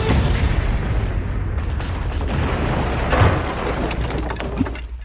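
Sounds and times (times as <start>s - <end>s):
explosion as a battleship is sunk: 0.1s - 4.6s.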